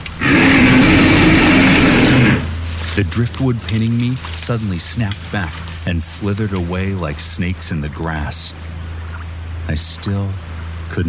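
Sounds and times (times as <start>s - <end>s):
creature's loud roar: 0.2s - 2.6s
speech: 3.0s - 8.6s, 9.6s - 11.0s.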